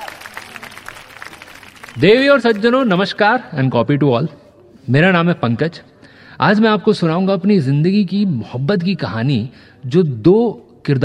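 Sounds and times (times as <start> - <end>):
audience applause: 0.0 - 3.0
speech: 2.0 - 11.0.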